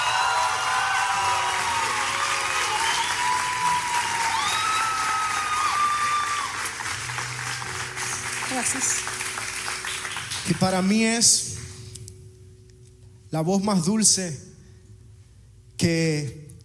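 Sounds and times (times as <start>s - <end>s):
cheers and whoops: 0.0s - 7.0s
crowd applause: 0.0s - 11.0s
high whistles and shouts: 2.6s - 6.4s
speech: 8.6s - 9.2s, 10.4s - 11.5s, 13.3s - 14.5s, 15.8s - 16.4s.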